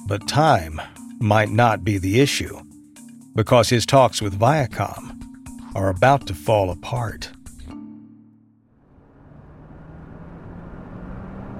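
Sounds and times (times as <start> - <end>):
speech: 0.1 - 2.7, 3.4 - 5.2, 5.8 - 7.4
racing green Aston Martin engine roaring along a highway: 8.7 - 11.5.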